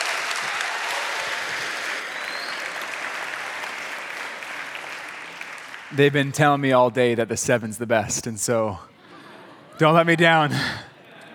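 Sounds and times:
audience applause welcoming a speaker: 0.0 - 6.2
speech: 5.9 - 9.0, 9.8 - 10.8.

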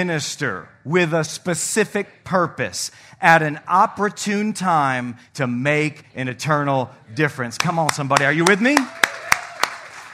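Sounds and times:
speech: 0.0 - 9.0
scattered applause: 7.6 - 10.1.

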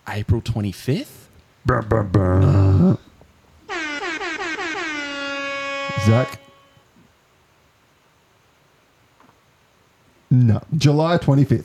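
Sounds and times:
speech: 0.1 - 3.1, 6.0 - 6.4, 10.6 - 11.6
quiz buzzer horn: 3.7 - 6.9.

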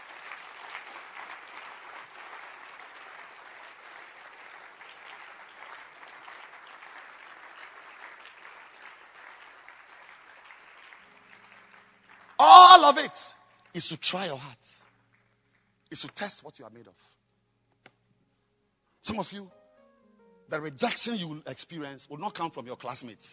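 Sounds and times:
audience clapping: 0.0 - 14.2
speech: 12.9 - 14.8, 15.9 - 17.2, 19.1 - 19.6, 20.5 - 23.3.

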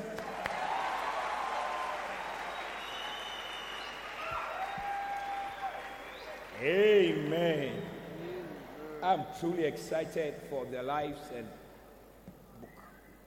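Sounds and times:
audience clapping and applause: 0.0 - 7.9
speech: 6.6 - 7.9, 9.0 - 11.6.

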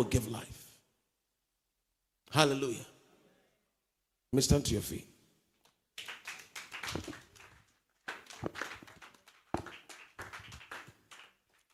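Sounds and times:
speech: 0.0 - 0.6, 2.3 - 2.9, 4.3 - 5.1
audience clapping: 6.0 - 11.7.

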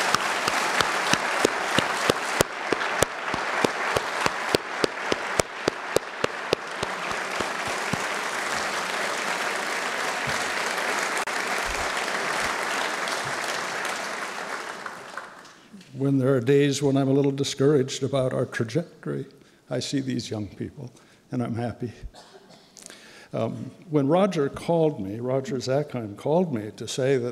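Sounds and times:
audience applause: 0.0 - 15.6
speech: 16.2 - 22.3, 23.3 - 27.3.

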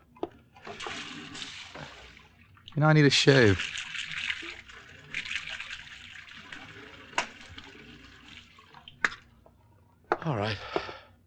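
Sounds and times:
tap water running: 0.1 - 11.1
hands being washed under running water: 0.6 - 9.3
speech: 2.8 - 3.8.

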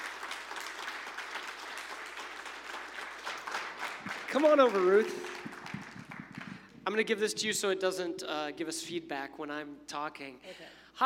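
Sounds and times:
audience applause: 0.0 - 6.8
speech: 4.3 - 5.4, 6.9 - 11.0.

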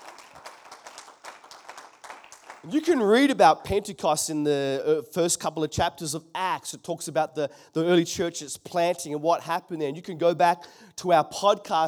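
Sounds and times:
audience clapping: 0.0 - 3.4
speech: 2.6 - 11.8.

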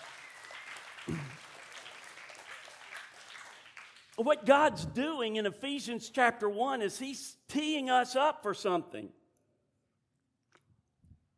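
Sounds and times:
crowd applauding: 0.0 - 4.8
speech: 4.2 - 9.2.

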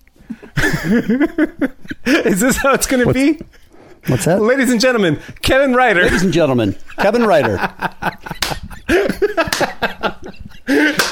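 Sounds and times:
laughter: 0.3 - 11.1
speech: 0.6 - 11.1
single hand clap: 8.4 - 8.7, 9.5 - 9.8, 11.0 - 11.1.

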